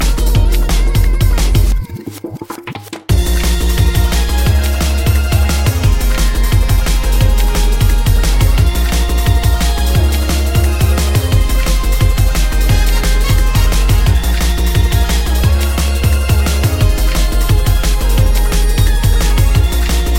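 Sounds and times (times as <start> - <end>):
drum and bass tone: 0.0 - 20.1.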